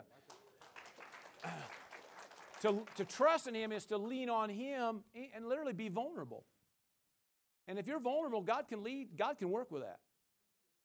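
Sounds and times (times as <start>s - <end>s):
audience clapping: 0.0s - 3.5s
speech: 2.6s - 6.5s, 7.7s - 10.0s.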